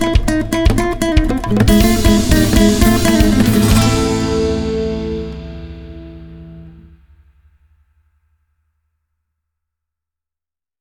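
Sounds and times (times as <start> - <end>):
fast flamenco music: 0.0 - 6.7.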